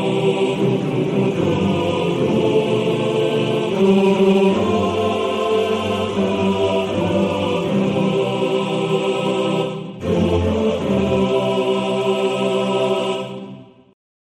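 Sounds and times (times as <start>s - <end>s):
choir singing: 0.0s - 14.0s.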